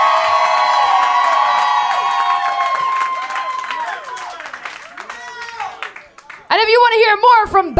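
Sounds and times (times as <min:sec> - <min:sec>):
live audience cheering and applauding: 0:00.0 - 0:06.6
speech: 0:07.1 - 0:07.7.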